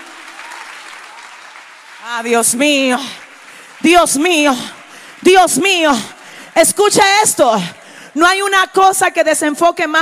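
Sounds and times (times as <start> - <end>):
audience applause: 0.0 - 6.4
speech: 2.0 - 3.2, 3.8 - 9.9.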